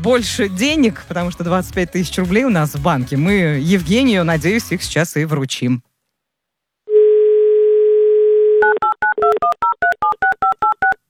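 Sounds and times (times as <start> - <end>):
speech: 0.0 - 5.9
telephone dialing tones: 6.9 - 11.0.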